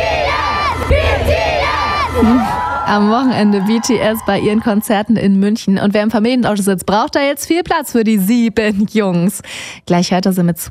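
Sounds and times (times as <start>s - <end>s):
concert crowd screaming: 0.0s - 5.1s
speech: 2.2s - 10.6s.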